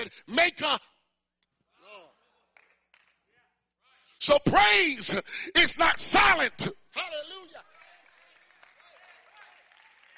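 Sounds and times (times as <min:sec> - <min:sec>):
speech: 0:00.1 - 0:01.0, 0:04.2 - 0:07.7
audience clapping: 0:02.5 - 0:03.4, 0:07.4 - 0:10.1.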